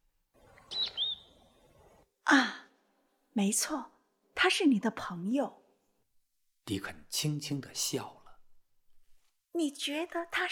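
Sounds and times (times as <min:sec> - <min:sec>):
robin calling: 0:00.4 - 0:02.0
speech: 0:03.4 - 0:05.6, 0:06.7 - 0:08.2, 0:09.6 - 0:10.4.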